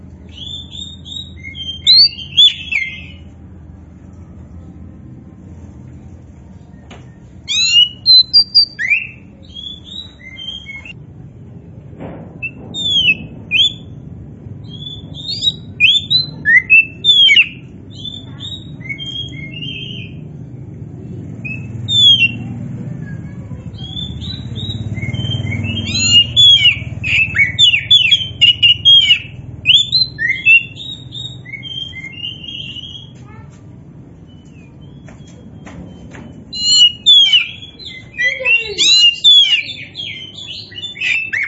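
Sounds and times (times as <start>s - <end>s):
low hum: 0.0s - 41.4s
Oriental magpie-robin song: 0.2s - 3.3s, 6.7s - 11.0s, 12.4s - 14.0s, 14.6s - 20.4s, 21.2s - 22.6s, 23.4s - 33.5s, 34.1s - 41.4s.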